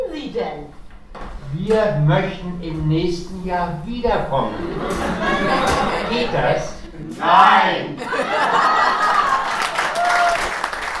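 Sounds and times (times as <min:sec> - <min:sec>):
speech: 0:00.2 - 0:00.8, 0:01.5 - 0:08.6
laughter: 0:04.4 - 0:10.3
audience applause: 0:08.1 - 0:10.9.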